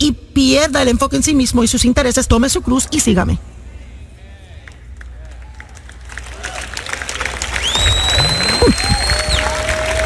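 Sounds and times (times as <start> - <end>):
speech: 0.0 - 3.5
applause: 4.6 - 10.0.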